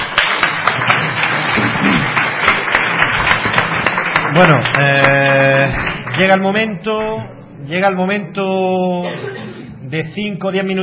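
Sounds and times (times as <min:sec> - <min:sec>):
audience applause: 0:00.0 - 0:06.5
speech: 0:04.4 - 0:10.8.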